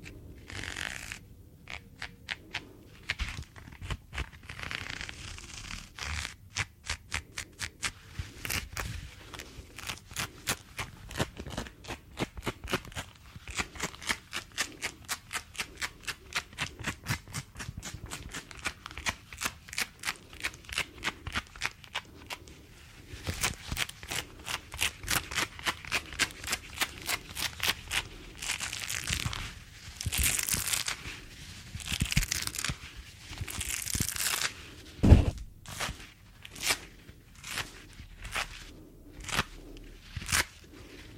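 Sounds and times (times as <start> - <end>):
gloves rubbed and snapped: 0.0 - 41.1.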